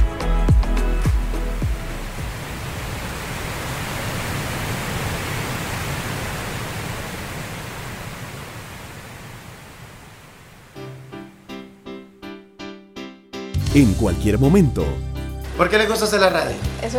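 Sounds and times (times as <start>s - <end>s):
pink noise: 0.2s - 11.7s
speech: 13.8s - 16.9s.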